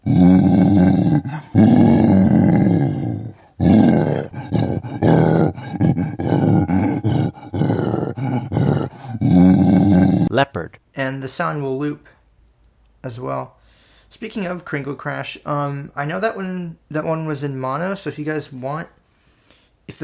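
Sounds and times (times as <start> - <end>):
gorilla guttural grunts and growls: 0.0 - 10.3
gorilla roar game sound effect: 0.0 - 10.4
speech: 11.3 - 12.2, 13.0 - 19.0, 19.9 - 20.0.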